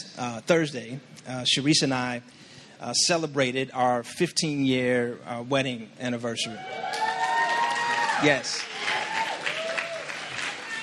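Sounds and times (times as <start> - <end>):
speech: 0.2 - 7.1, 8.2 - 8.7
audience clapping: 6.8 - 10.8.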